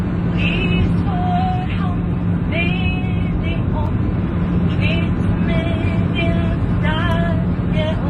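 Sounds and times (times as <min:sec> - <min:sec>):
airplane cabin noise in flight: 0:00.0 - 0:08.0.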